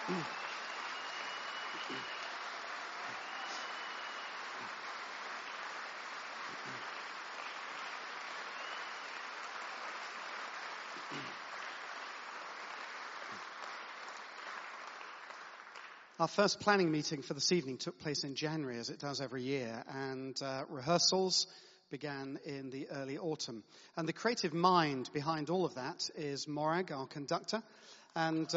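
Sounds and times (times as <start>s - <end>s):
audience applause: 0.0s - 16.2s
speech: 0.1s - 0.5s, 1.9s - 2.2s, 16.2s - 28.5s.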